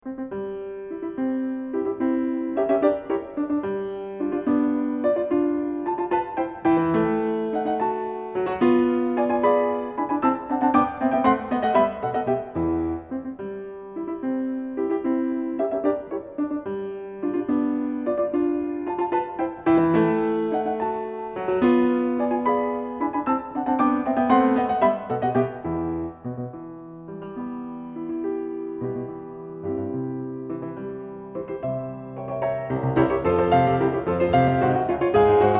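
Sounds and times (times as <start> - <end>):
piano variations in C: 0.0 - 35.5.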